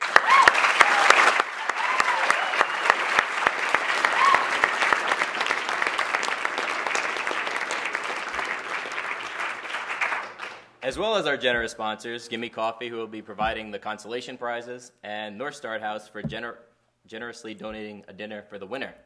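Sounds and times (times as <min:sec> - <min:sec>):
audience clapping: 0:00.0 - 0:10.7
speech: 0:10.9 - 0:19.0.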